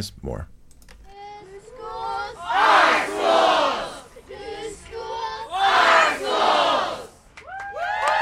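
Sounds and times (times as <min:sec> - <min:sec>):
rally crowd chanting and cheering: 0:01.1 - 0:07.2.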